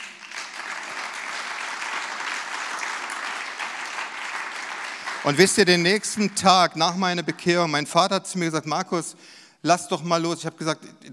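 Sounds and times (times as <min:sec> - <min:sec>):
audience applause: 0:00.0 - 0:06.5
speech: 0:05.2 - 0:11.1.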